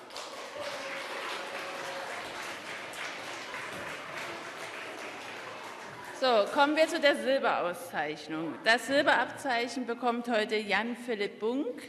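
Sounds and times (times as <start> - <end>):
audience applause: 0.0 - 6.6
speech: 6.2 - 11.8.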